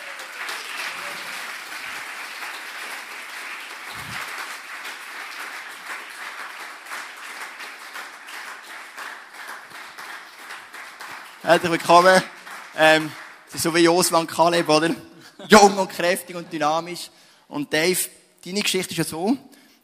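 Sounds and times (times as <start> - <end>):
crowd applauding: 0.0 - 13.9
speech: 11.4 - 19.5.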